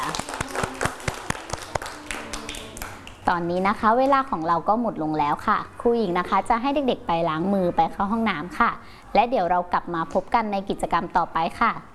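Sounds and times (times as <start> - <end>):
children clapping for themselves: 0.0 - 3.5
speech: 3.3 - 11.9.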